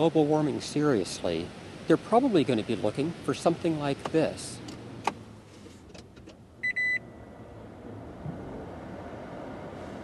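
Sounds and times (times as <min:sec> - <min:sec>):
speech: 0:00.0 - 0:04.6
Toyota Prius key in the ignition beeper: 0:06.6 - 0:07.1.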